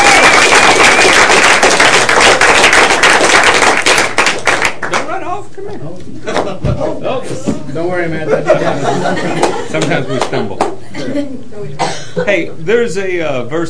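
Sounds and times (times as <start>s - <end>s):
audience clapping in praise: 0.0s - 5.2s, 9.4s - 10.8s
speech: 6.9s - 13.6s
laughter: 8.1s - 11.4s.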